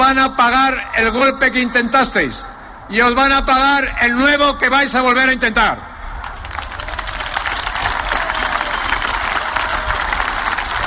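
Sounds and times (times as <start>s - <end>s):
speech: 0.1s - 5.9s
timid applause: 6.2s - 10.8s.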